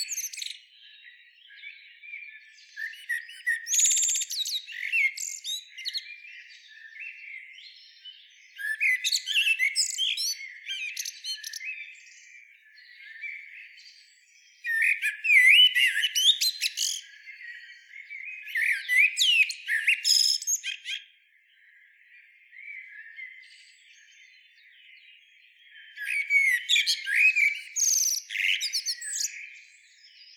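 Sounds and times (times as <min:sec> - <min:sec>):
Eurasian blackbird singing: 0:00.0 - 0:30.3.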